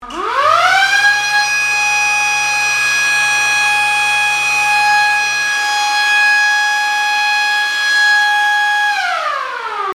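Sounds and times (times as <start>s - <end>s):
siren wailing: 0.0s - 9.9s.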